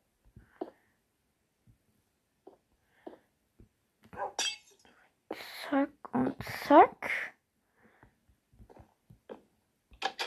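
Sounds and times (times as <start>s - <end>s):
glass panes shattering in a video game: 4.3s - 4.8s
speech: 5.7s - 6.9s.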